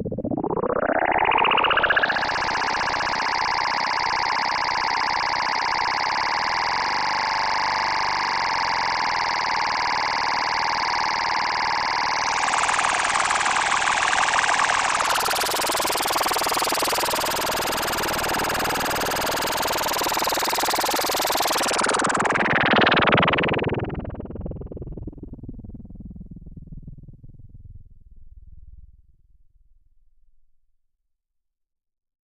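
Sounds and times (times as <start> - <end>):
energy beam: 0.1 - 24.6.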